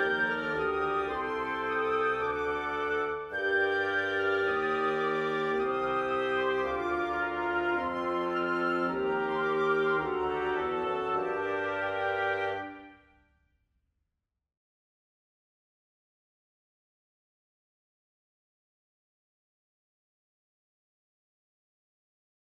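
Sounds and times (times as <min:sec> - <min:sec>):
wind quintet playing: 0:00.0 - 0:13.0.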